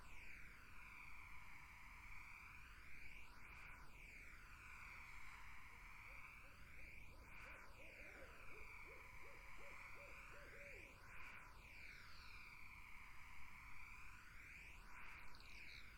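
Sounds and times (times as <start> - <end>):
insects droning: 0.0 - 15.9
barred owl hooting: 7.8 - 10.9.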